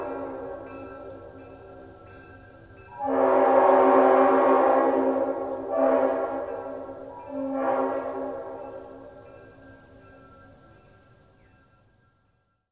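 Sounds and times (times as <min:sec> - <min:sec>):
horns: 0:02.9 - 0:08.8.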